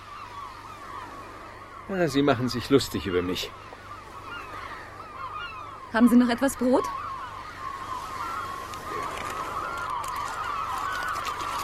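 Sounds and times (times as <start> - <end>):
flock of seagulls calling: 0.0 - 11.6
speech: 1.9 - 3.7, 5.9 - 7.0.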